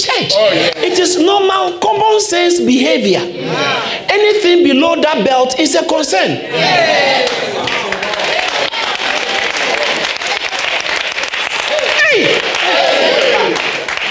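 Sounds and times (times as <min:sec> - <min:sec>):
speech: 0:00.2 - 0:07.8
crowd clapping: 0:07.1 - 0:14.1.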